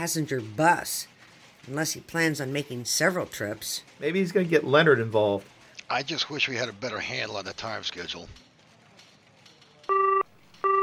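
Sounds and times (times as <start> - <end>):
speech: 0.0 - 8.5
telephone ringing with incoming call, bright two-tone electronic chime: 9.9 - 10.8.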